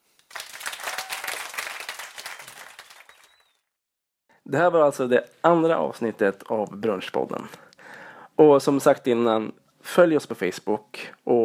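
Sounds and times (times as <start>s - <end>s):
small audience applause: 0.1s - 3.7s
speech: 4.5s - 7.7s, 8.4s - 11.4s.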